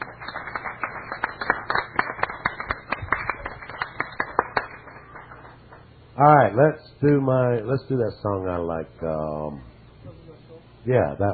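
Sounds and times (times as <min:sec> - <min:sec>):
audience cheering and clapping: 0:00.0 - 0:05.8
speech: 0:06.2 - 0:09.7, 0:10.8 - 0:11.3.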